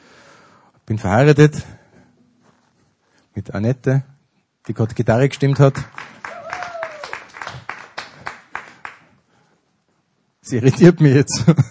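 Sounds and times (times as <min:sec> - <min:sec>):
speech: 0:00.9 - 0:01.8, 0:03.4 - 0:06.0, 0:10.5 - 0:11.6
one person clapping: 0:05.4 - 0:09.1.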